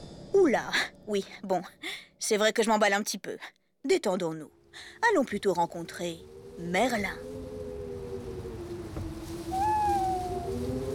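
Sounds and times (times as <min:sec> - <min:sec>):
speech: 0:00.4 - 0:07.3
owl from the Northumberland forest hooting: 0:09.4 - 0:10.9.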